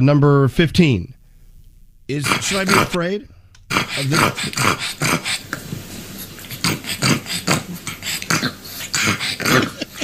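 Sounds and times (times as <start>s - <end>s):
speech: 0.0s - 1.2s, 2.1s - 5.7s
pug dog snorting and grunting: 2.2s - 3.0s, 3.7s - 10.0s.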